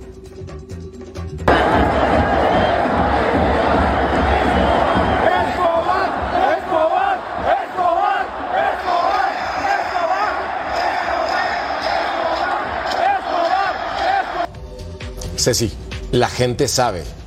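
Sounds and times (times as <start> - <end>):
stadium crowd chanting in protest: 1.5 - 14.5
speech: 15.4 - 17.2.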